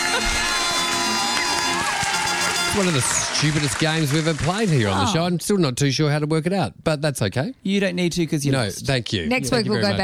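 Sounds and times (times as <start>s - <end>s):
crowd cheering and clapping sound effect: 0.0s - 5.2s
speech: 2.8s - 10.0s.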